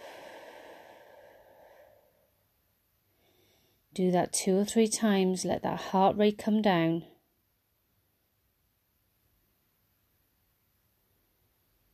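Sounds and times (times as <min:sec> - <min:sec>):
deep breathing during a walking workout cool-down: 0:00.0 - 0:02.3
speech: 0:04.0 - 0:07.1.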